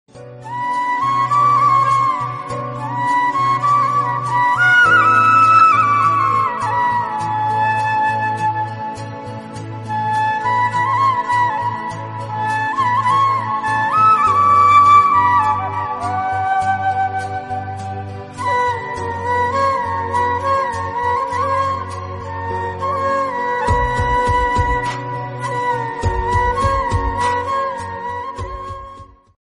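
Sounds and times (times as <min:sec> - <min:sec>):
song with flute: 0:00.1 - 0:29.4.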